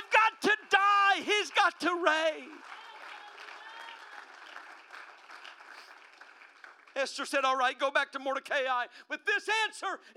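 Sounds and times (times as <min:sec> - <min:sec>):
audience clapping hands: 0:00.0 - 0:07.3
speech: 0:01.4 - 0:02.8, 0:07.0 - 0:10.1.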